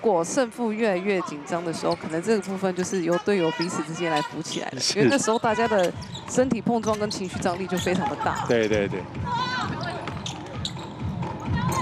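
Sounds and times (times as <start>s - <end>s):
speech: 0.0s - 9.5s
commentary voices: 0.0s - 10.6s
crowd noise: 0.0s - 11.8s
basketball bouncing on the court floor during a game involving the University of Sydney: 5.4s - 8.5s, 9.1s - 11.8s.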